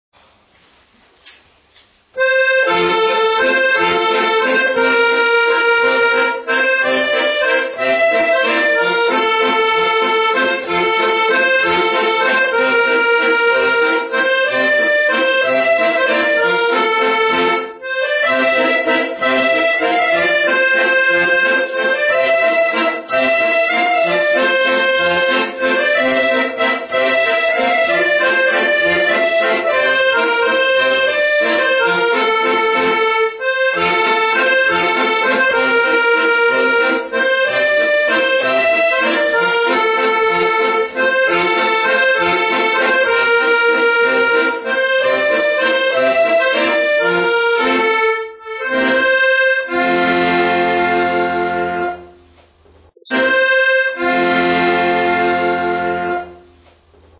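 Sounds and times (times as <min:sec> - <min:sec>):
accordion melody: 0:02.1 - 0:57.1.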